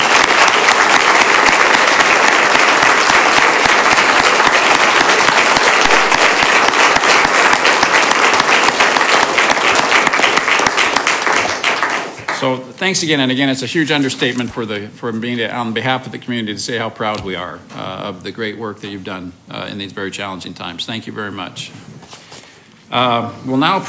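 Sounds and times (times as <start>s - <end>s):
audience applause: 0.0s - 12.4s
speech: 12.4s - 21.9s, 22.9s - 23.8s.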